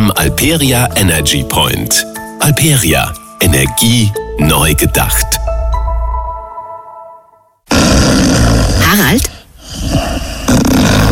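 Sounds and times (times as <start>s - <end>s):
speech: 0.1s - 5.6s
snoring: 7.7s - 11.1s.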